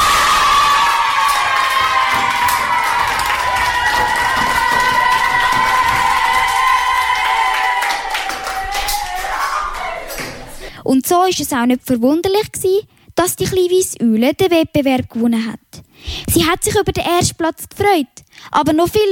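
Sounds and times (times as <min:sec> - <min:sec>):
scattered clapping: 0:00.0 - 0:10.6
crowd cheering with shrill excited voices: 0:00.0 - 0:10.7
speech: 0:10.9 - 0:19.1.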